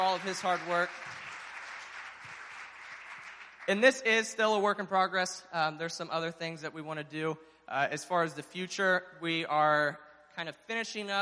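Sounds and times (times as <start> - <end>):
speech: 0.0 - 1.2, 3.7 - 11.2
crowd clapping: 0.0 - 4.2.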